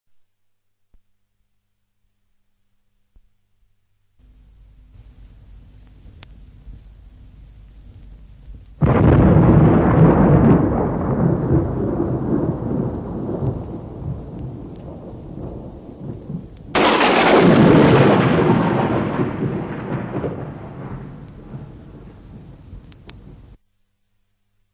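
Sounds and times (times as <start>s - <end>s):
thunder: 8.8s - 23.5s.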